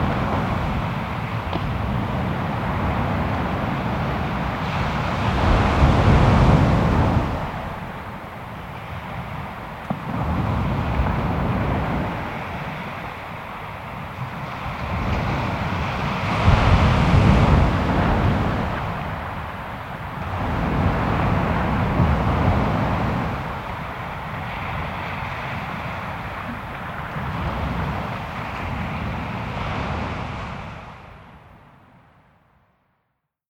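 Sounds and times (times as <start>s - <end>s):
distant ocean: 0.0s - 33.0s.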